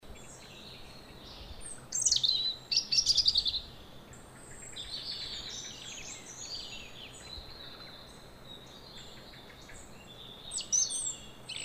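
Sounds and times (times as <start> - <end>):
European robin singing: 0.0 - 11.6
background hiss: 0.0 - 11.6.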